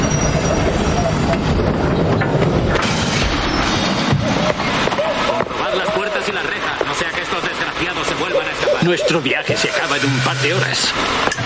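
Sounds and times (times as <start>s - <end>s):
clickety-clack of rail cars: 0.0s - 7.3s
night train slowly pulling into a station: 0.0s - 11.4s
speech: 8.9s - 11.4s.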